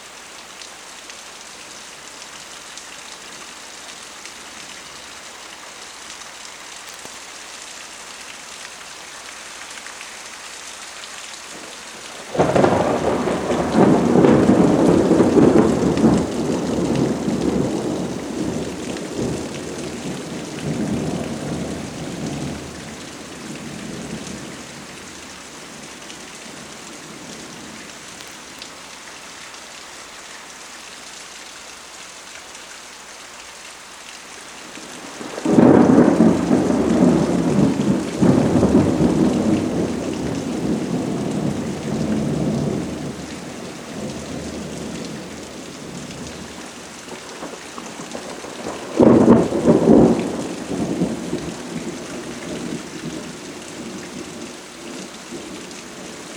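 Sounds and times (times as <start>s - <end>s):
rain: 0.0s - 56.3s
frequent heavy thunder: 12.2s - 27.8s, 34.9s - 56.2s.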